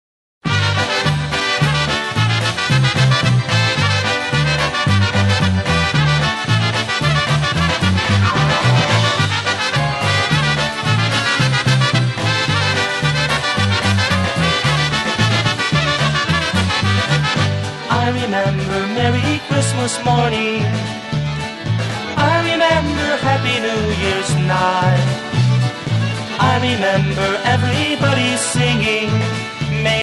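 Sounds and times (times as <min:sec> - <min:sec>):
push-style Christmas polka: 0:00.4 - 0:30.0.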